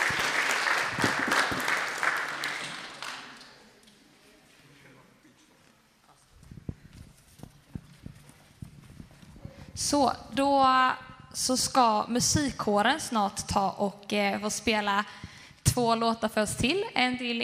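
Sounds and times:
applause in a church: 0:00.0 - 0:03.6
speech: 0:09.9 - 0:17.4.

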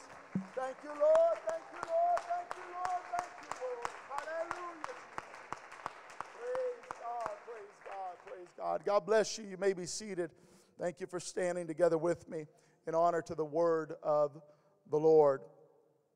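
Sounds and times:
audience clapping: 0:00.0 - 0:08.9
speech: 0:00.4 - 0:05.1, 0:07.5 - 0:15.6.

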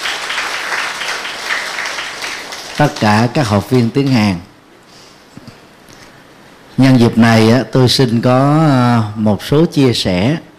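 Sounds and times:
audience applause at a Korean language event: 0:00.0 - 0:03.8
speech: 0:02.8 - 0:04.5, 0:06.8 - 0:10.5.

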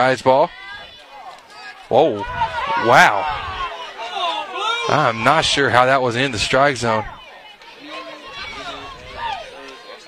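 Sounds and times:
speech: 0:00.0 - 0:00.6, 0:01.9 - 0:03.5, 0:04.9 - 0:07.2
stadium crowd reacting to a pitch: 0:00.0 - 0:10.0.

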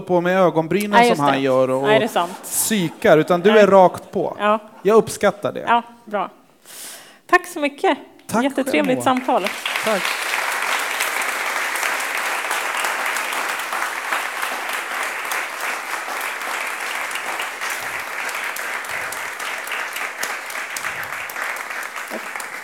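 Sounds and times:
speech: 0:00.0 - 0:10.3
audience applause: 0:08.8 - 0:22.6.

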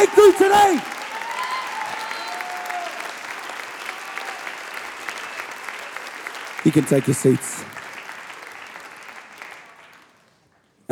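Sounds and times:
speech: 0:00.0 - 0:01.0, 0:06.6 - 0:07.8
scattered cheers and whistles: 0:00.0 - 0:06.0
large crowd clapping in dense sustained applause: 0:00.0 - 0:10.7.

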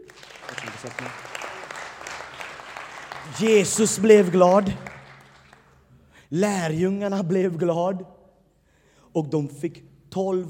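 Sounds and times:
audience applause: 0:00.0 - 0:05.8
speech: 0:00.8 - 0:01.3, 0:03.3 - 0:04.9, 0:06.3 - 0:08.2, 0:09.2 - 0:10.4.

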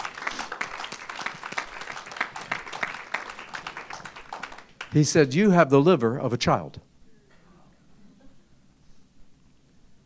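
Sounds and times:
audience applause: 0:00.0 - 0:05.1
speech: 0:04.9 - 0:06.9.

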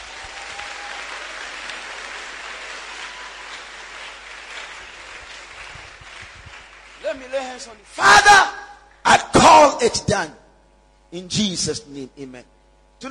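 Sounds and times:
audience applause: 0:00.0 - 0:08.0
speech: 0:07.1 - 0:08.6, 0:09.8 - 0:10.4, 0:11.1 - 0:13.0.

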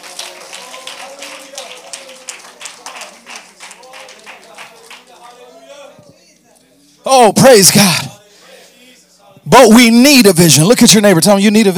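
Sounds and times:
crowd clapping: 0:00.0 - 0:05.7
speech: 0:07.0 - 0:08.1, 0:09.5 - 0:11.7.

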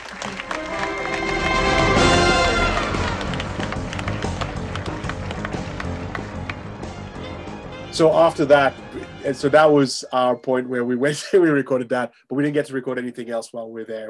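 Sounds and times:
cinema audience applause: 0:00.0 - 0:09.5
speech: 0:08.0 - 0:14.0.

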